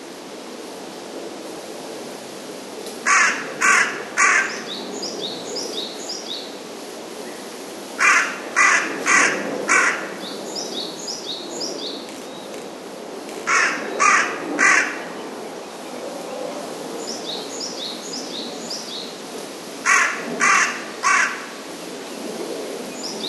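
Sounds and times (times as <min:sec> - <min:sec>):
carrion crow cawing: 0:03.1 - 0:04.6, 0:08.0 - 0:10.2, 0:13.5 - 0:15.0, 0:19.8 - 0:21.6.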